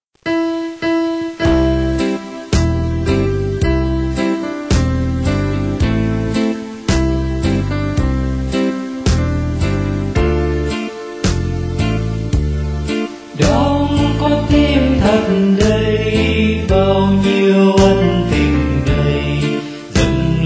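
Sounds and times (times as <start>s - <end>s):
bass: 1.5s - 20.4s.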